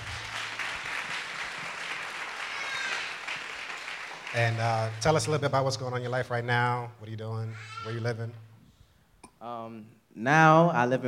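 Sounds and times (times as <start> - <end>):
audience clapping: 0.0 - 5.9
speech: 4.3 - 8.5, 9.4 - 11.0.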